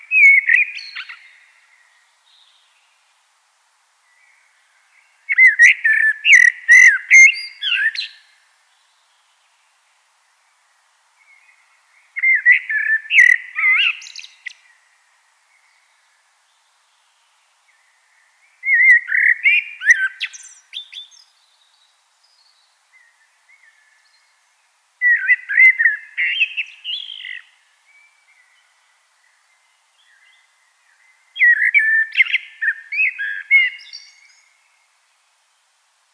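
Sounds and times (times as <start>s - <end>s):
Common blackbird song: 0.0s - 3.2s, 3.9s - 9.7s, 10.3s - 36.1s.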